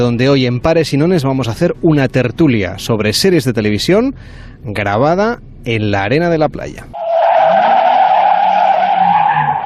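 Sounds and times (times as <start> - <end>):
speech: 0.0 - 7.0
Onda Cero mobile unit car driving on Camino de Siches road: 6.9 - 9.6.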